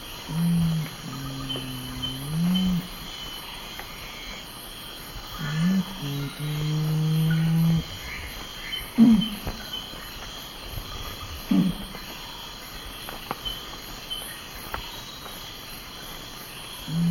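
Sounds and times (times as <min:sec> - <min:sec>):
nocturnal curassow deep humming song in Ecuador: 0:00.0 - 0:12.3, 0:16.6 - 0:17.0.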